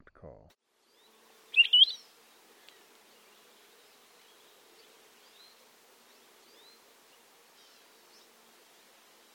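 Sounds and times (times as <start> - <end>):
Palila warbling: 1.5 - 3.4.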